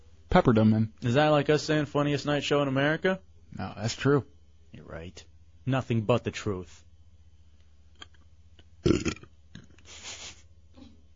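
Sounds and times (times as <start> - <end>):
speech: 0.4 - 6.9, 8.8 - 9.2
loud guttural burp: 8.8 - 9.7.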